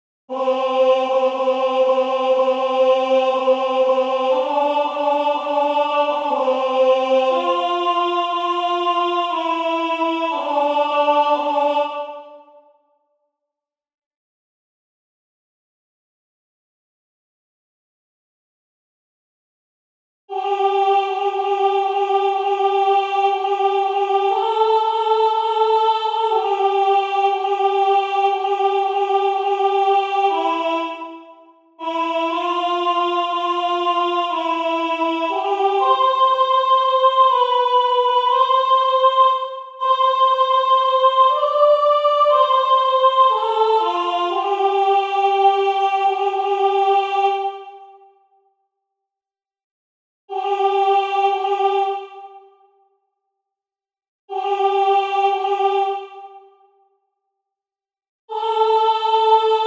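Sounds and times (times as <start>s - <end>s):
alto voices singing a solemn mass: 0.3s - 12.8s, 20.3s - 48.1s, 50.3s - 52.6s, 54.3s - 56.6s, 58.3s - 59.6s.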